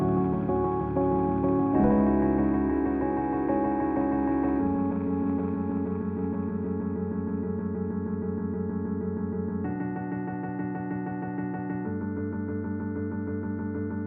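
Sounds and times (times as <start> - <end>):
lo-fi music: 0.0 - 13.9.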